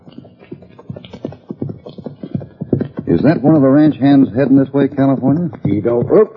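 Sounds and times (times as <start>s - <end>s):
horse galloping hoofbeats: 0.4s - 6.3s
speech: 3.1s - 6.3s.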